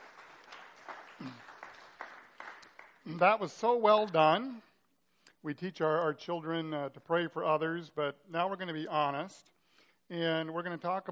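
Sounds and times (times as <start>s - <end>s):
audience applause: 0.0s - 3.2s
speech: 1.2s - 1.5s, 3.1s - 4.7s, 5.4s - 9.5s, 10.1s - 11.1s.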